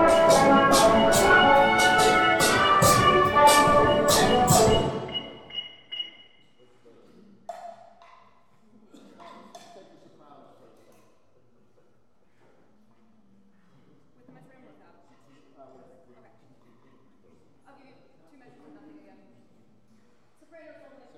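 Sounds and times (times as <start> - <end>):
brass playing a song: 0.0 - 5.6.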